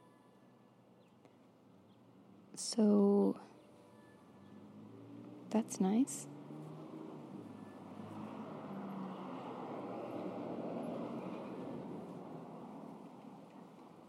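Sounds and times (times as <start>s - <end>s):
speech: 2.6s - 3.5s, 5.5s - 6.4s
cars driving past outside an Arizona front yard: 4.2s - 14.0s.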